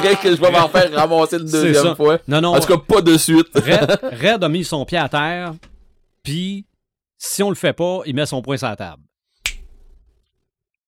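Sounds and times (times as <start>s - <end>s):
laughter: 0.0s - 1.8s, 2.6s - 4.4s
speech: 0.0s - 9.1s
finger snapping: 9.4s - 9.7s.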